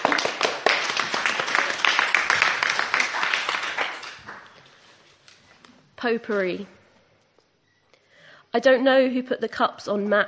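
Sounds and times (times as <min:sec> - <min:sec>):
crowd applauding: 0:00.0 - 0:04.6
speech: 0:06.0 - 0:06.8, 0:08.5 - 0:10.2.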